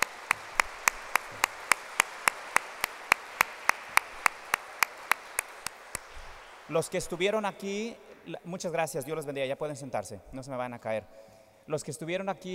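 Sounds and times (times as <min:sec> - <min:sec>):
audience applause: 0:00.0 - 0:07.4
speech: 0:06.7 - 0:12.5.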